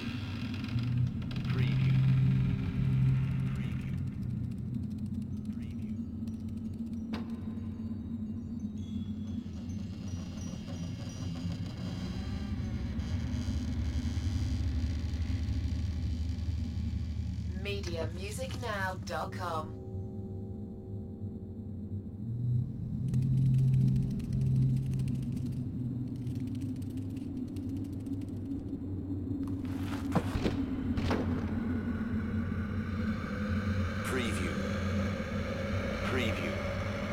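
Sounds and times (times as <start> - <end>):
fantasy cemetery or graveyard ambience: 0.0 - 37.1.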